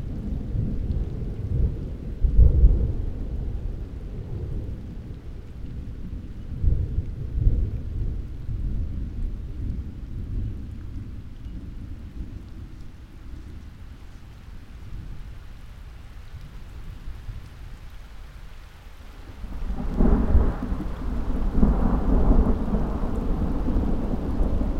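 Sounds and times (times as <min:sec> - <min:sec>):
summer thunderstorm: 0:00.0 - 0:13.6, 0:19.3 - 0:24.7.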